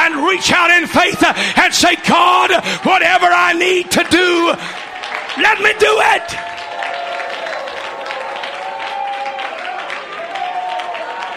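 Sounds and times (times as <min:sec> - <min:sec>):
speech: 0:00.3 - 0:04.8, 0:05.4 - 0:06.6
crowd clapping: 0:02.6 - 0:11.3.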